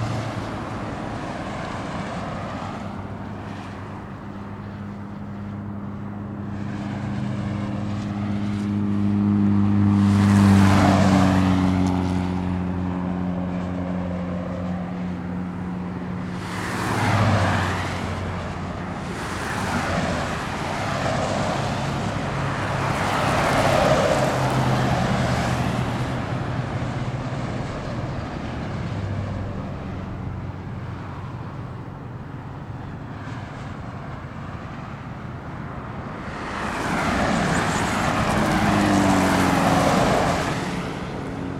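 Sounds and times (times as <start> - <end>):
car traffic in traffic jams: 0.0 - 41.5.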